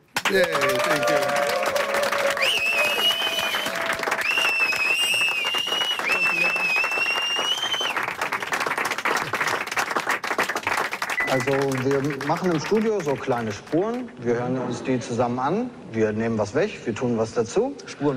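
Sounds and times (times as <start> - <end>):
round of applause: 0.0 - 14.2
speech: 0.3 - 1.4, 11.4 - 18.1.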